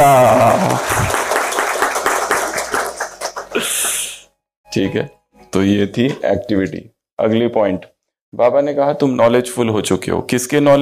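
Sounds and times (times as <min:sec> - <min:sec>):
group clapping: 0:00.0 - 0:04.2
speech: 0:04.8 - 0:10.8.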